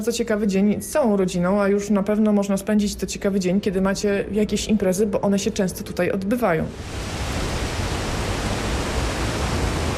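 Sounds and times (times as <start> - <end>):
speech: 0.0 - 7.4
wind blowing from the Liwiec Valley: 6.6 - 9.9.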